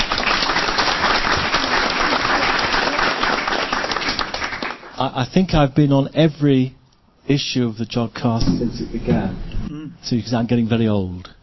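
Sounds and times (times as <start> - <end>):
studio audience applause: 0.0 - 5.0
speech: 5.0 - 9.4, 10.0 - 11.4.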